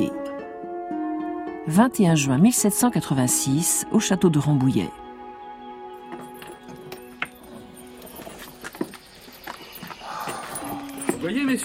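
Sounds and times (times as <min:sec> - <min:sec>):
speech: 0:01.7 - 0:05.0, 0:11.4 - 0:11.6
horse hooves clip-clopping: 0:06.0 - 0:11.6.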